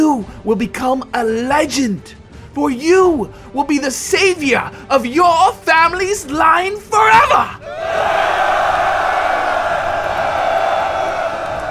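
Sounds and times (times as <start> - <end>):
speech: 0.2 - 8.4
soldiers cheering before a siege battle: 7.1 - 11.6.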